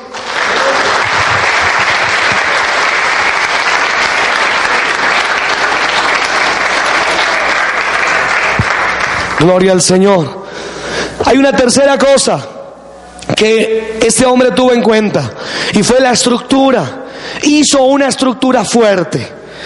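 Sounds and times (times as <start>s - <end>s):
large audience applause: 0.0s - 9.5s
speech: 9.4s - 10.4s, 11.2s - 12.5s, 13.4s - 19.6s.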